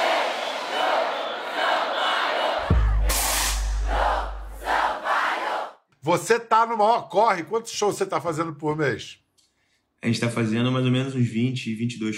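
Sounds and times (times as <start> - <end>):
crowd shouting warm-up chant at concert: 0.0 - 5.8
deep bass boom: 2.6 - 4.8
speech: 6.1 - 9.2, 10.0 - 12.1.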